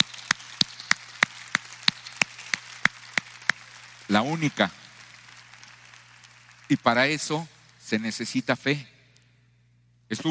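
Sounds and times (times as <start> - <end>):
evenly paced clapping: 0.0 - 8.4
speech: 4.1 - 4.8, 6.7 - 8.9, 10.1 - 10.3.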